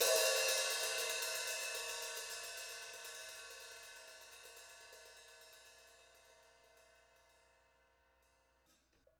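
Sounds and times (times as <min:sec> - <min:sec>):
mostly open hi-hat hit hard: 0:00.0 - 0:06.2.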